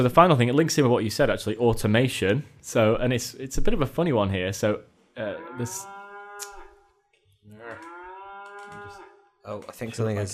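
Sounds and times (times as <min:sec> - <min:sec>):
speech: 0:00.0 - 0:06.5, 0:09.5 - 0:10.3
cow mooing: 0:05.2 - 0:06.9, 0:07.5 - 0:09.3.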